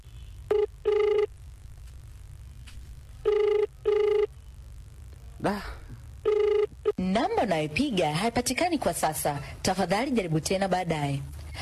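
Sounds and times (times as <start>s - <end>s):
faint low hum: 0.0s - 11.6s
telephone ringing on the line after dialing a number: 0.5s - 1.3s, 3.2s - 4.3s, 6.2s - 6.8s
speech: 5.5s - 5.8s, 7.0s - 11.6s.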